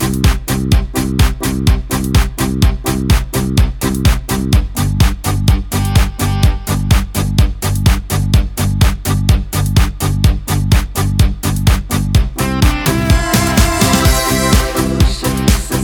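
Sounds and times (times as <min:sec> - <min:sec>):
karaoke backing track in C major: 0:00.0 - 0:15.8
choir singing: 0:12.9 - 0:15.8.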